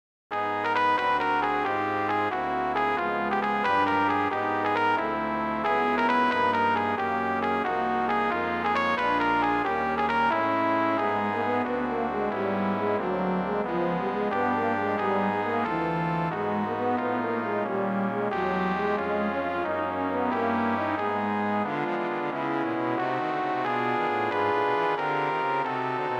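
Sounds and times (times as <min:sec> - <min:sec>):
brass quintet playing: 0:00.6 - 0:26.1.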